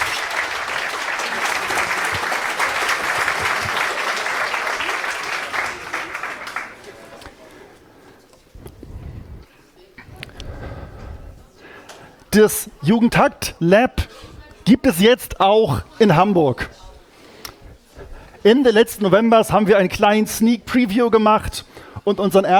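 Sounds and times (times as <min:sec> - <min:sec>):
audience applause: 0:00.0 - 0:07.6
speech: 0:12.4 - 0:14.0, 0:14.7 - 0:16.8, 0:18.4 - 0:22.5.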